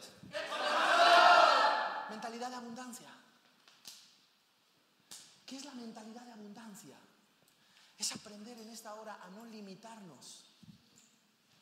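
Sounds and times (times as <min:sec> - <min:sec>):
crowd shouting a single word in unison: 0:00.3 - 0:02.1
speech: 0:08.0 - 0:10.4.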